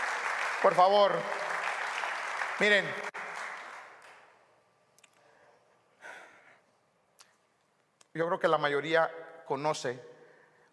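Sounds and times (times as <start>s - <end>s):
audience applause: 0.0s - 4.3s
speech: 0.6s - 1.4s, 2.6s - 3.1s, 8.2s - 10.1s.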